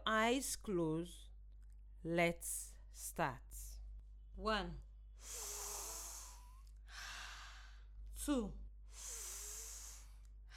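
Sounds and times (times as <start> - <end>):
speech: 0.1 - 1.3, 2.0 - 3.8, 4.4 - 5.7, 8.2 - 9.2
slow deep breathing in through the nose and out through the mouth: 5.2 - 8.0, 8.8 - 10.5.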